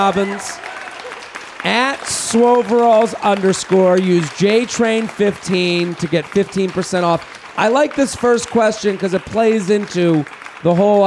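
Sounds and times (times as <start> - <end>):
speech: 0.0 - 0.7, 1.6 - 11.0
clapping: 0.0 - 11.0
loud sustained cheering whoop: 0.1 - 1.3.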